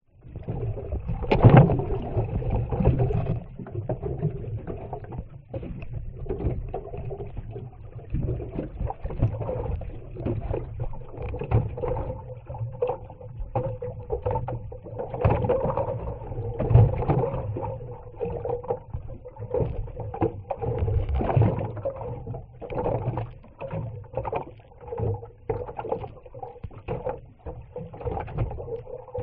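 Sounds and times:
boat movement recorded underwater: 0.0s - 29.2s.

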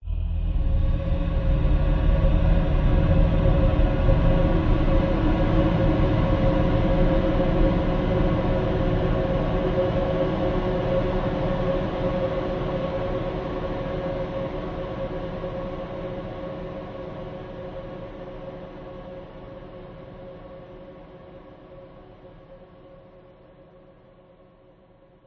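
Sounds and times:
dark sinister drone: 0.0s - 15.0s
swelling angelic choir singing ahh: 0.0s - 18.2s.

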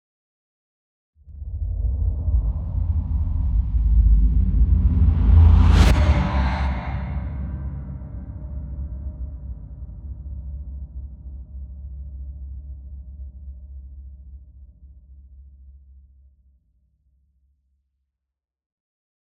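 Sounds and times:
creepy transition sound: 1.4s - 8.9s.

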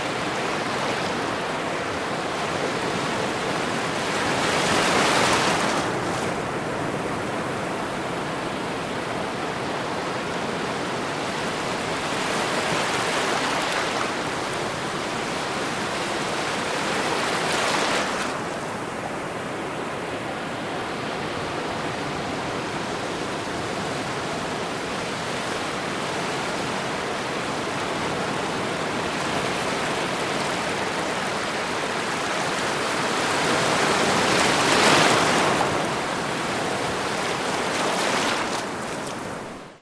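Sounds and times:
distant subtropical ocean surf: 0.0s - 39.7s
smaller waves lapping onto sandy beach: 0.0s - 39.7s.

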